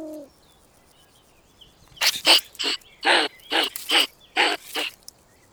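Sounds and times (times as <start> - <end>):
European pine marten harsh clicks: 2.0 - 5.1.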